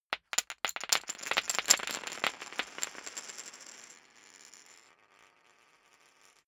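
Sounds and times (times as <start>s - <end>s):
poker chips dropping: 0.2s - 4.7s.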